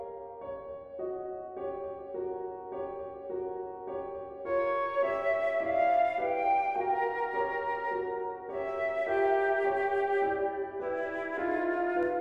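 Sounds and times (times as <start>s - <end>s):
piano: 0.0s - 12.1s
flute: 4.4s - 12.1s.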